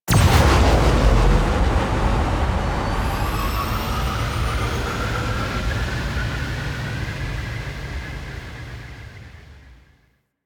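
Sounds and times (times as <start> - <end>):
ship hyper speed start: 0.1 - 7.7.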